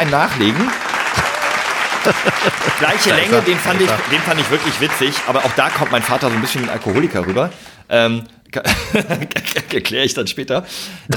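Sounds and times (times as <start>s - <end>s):
speech: 0.0s - 0.9s, 2.0s - 11.1s
canned applause sound effect: 0.0s - 7.7s
laughter: 0.5s - 7.4s, 8.7s - 9.9s.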